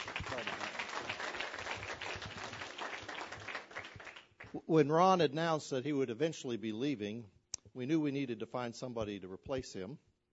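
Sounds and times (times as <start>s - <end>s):
audience applause: 0.0s - 4.6s
speech: 4.5s - 10.3s.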